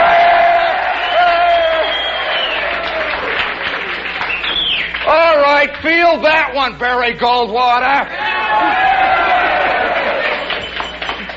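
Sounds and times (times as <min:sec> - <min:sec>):
crowd cheering: 0:00.0 - 0:05.8, 0:08.0 - 0:11.3
speech: 0:05.8 - 0:09.2.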